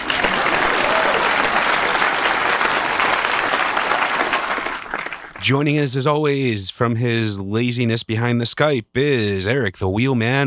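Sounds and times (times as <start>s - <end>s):
crowd clapping: 0.0s - 5.6s
speech: 5.5s - 10.4s.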